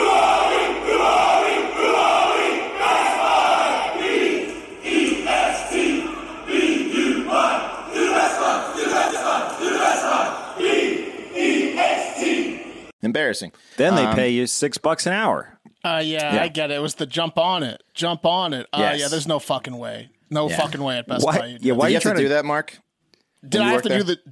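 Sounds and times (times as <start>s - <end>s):
employees yelling in team-building chant: 0.0s - 12.9s
speech: 13.4s - 22.8s, 23.4s - 24.3s.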